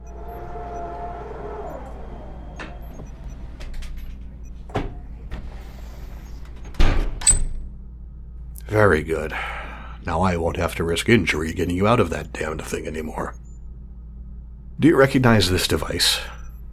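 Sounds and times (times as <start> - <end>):
mechanical chamber door sliding open: 0.0 - 7.6
steady low hum: 0.0 - 16.7
speech: 8.7 - 13.4, 14.8 - 16.4.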